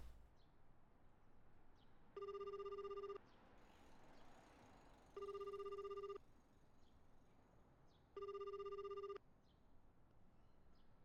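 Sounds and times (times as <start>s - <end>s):
telephone ringback tone during an outgoing call to a moving company: 2.1s - 3.2s, 5.1s - 6.2s, 8.1s - 9.2s.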